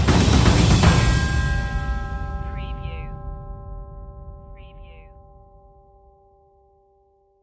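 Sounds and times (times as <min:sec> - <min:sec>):
land stinger sound effect: 0:00.1 - 0:03.2.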